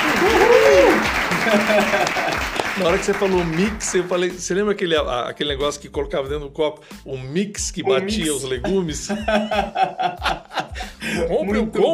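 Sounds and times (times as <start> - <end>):
person cheering or whooping: 0.0 - 1.8, 7.8 - 8.7
audience applause: 0.0 - 4.2
laughter: 0.5 - 2.6, 8.2 - 11.5
speech: 1.4 - 11.9.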